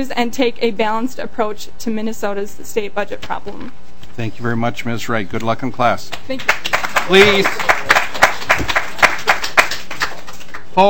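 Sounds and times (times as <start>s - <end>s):
speech: 0.0s - 7.9s
scattered applause from a small group: 6.4s - 10.7s.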